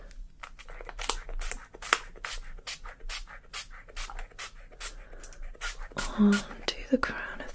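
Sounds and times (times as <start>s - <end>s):
spray bottle spraying scalp oil: 0.7s - 6.5s
speech: 6.2s - 7.3s.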